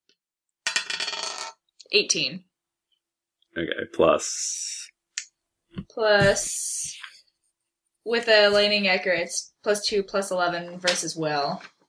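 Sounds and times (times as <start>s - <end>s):
dice being rolled: 0.7s - 1.6s
speech: 1.9s - 2.5s, 3.6s - 4.9s, 5.7s - 7.1s, 8.0s - 11.7s.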